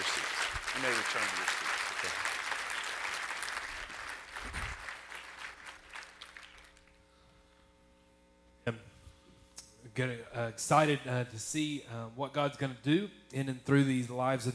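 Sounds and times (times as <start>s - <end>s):
audience applauding: 0.0s - 6.9s
speech: 0.8s - 2.3s, 10.0s - 14.5s.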